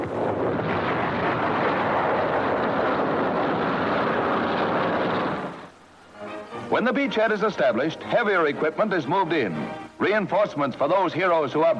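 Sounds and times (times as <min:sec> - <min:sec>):
bombs exploding on a bridge: 0:00.0 - 0:05.7
speech: 0:06.8 - 0:11.7.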